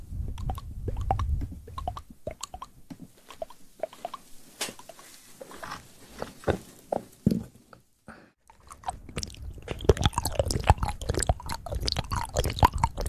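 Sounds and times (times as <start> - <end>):
wet mouth clicks, smacks and chewing-like crunches: 0.3 - 5.0, 8.5 - 13.0.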